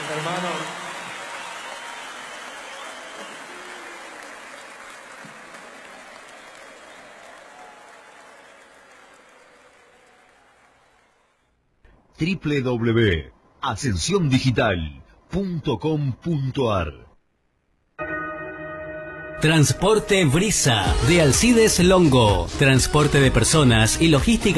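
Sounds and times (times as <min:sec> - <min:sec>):
crowd applause: 0:00.0 - 0:11.5
speech: 0:00.1 - 0:00.8, 0:12.2 - 0:17.1, 0:19.4 - 0:24.5.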